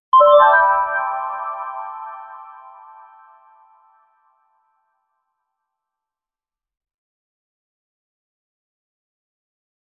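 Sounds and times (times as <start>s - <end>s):
Xiaomi Redmi mobile phone ringtone: 0.2s - 2.0s.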